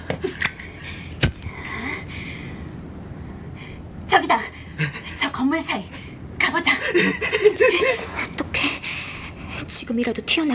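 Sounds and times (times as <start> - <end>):
lighter being flicked: 0.4 - 1.8
speech: 4.3 - 6.0, 6.6 - 8.3, 9.7 - 10.5.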